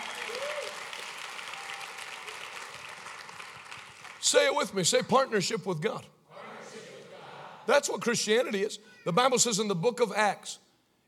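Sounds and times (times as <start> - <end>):
audience clapping: 0.0 - 4.4
speech: 4.3 - 6.2, 7.7 - 10.6.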